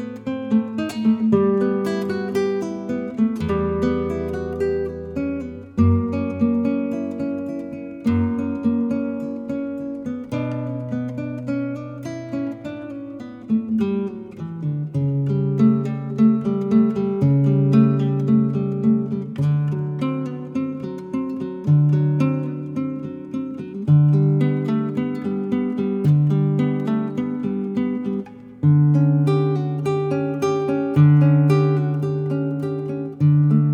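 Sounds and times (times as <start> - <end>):
prelude in D on acoustic guitar: 0.0 - 33.7.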